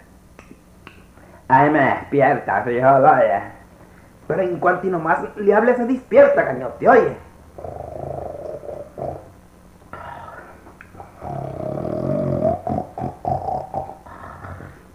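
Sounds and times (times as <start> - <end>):
speech: 1.5 - 3.6, 4.3 - 7.7
person snoring: 7.6 - 9.3, 9.9 - 14.9.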